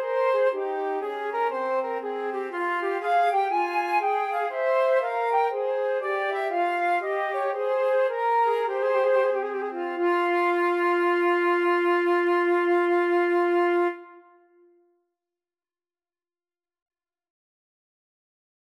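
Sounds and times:
flute trio playing a baroque bourree: 0:00.0 - 0:14.5.

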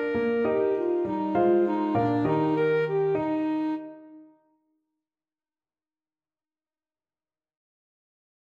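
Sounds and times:
alto saxophone playing a gigue in G major: 0:00.0 - 0:04.4.

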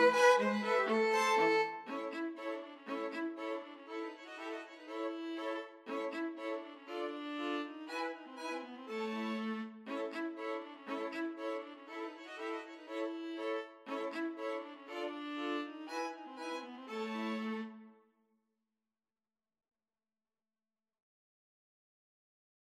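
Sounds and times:
two violins and viola playing a freilechs: 0:00.0 - 0:17.8.

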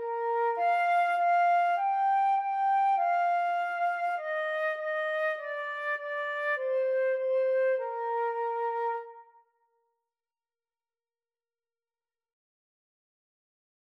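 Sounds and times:
flute and clarinet duet: 0:00.0 - 0:09.4.

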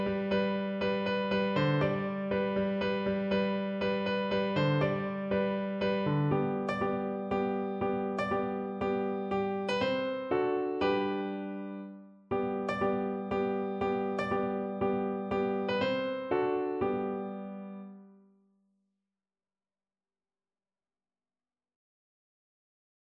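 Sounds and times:
autumn-themed piano piece: 0:00.0 - 0:18.3.

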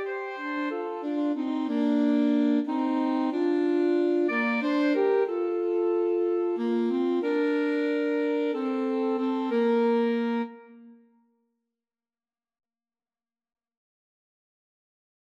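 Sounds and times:
alto saxophone duet playing a folk song: 0:00.0 - 0:11.0.

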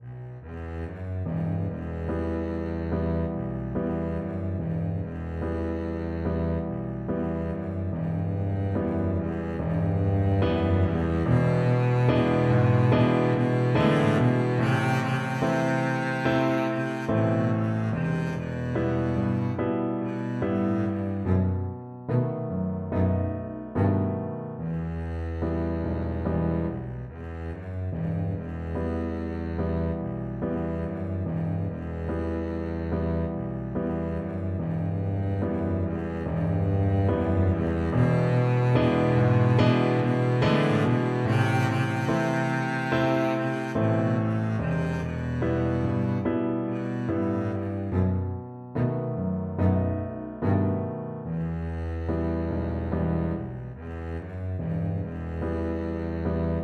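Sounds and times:
double bass playing a folk song: 0:00.0 - 0:56.6.

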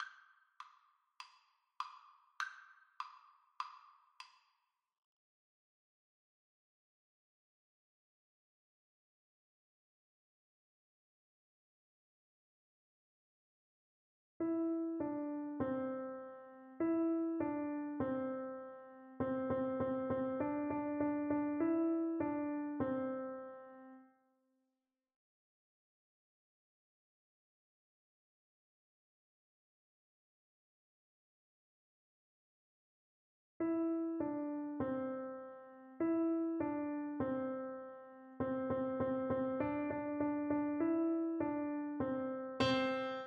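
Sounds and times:
piano duet: 0:14.4 - 0:24.0, 0:33.6 - 0:43.2.

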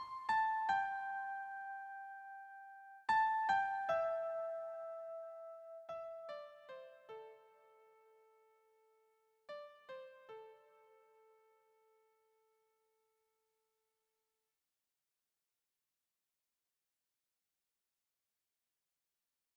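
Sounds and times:
keyboard melody: 0:00.0 - 0:08.7, 0:09.5 - 0:11.6.

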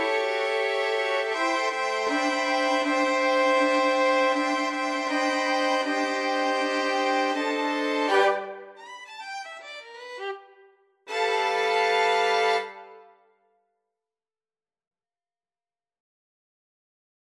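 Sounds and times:
jazzy violin ensemble: 0:00.0 - 0:13.0.

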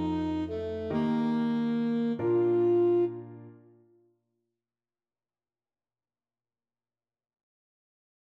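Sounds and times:
alto saxophone: 0:00.0 - 0:03.7.

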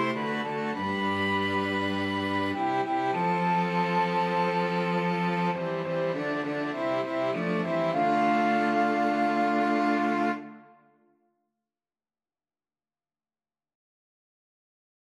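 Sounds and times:
flexible mixed ensemble of 4 players: 0:00.0 - 0:10.6.

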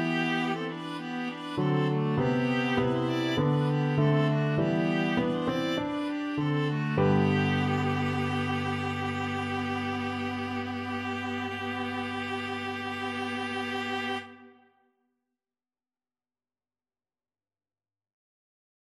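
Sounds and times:
viola duet: 0:00.0 - 0:14.7.

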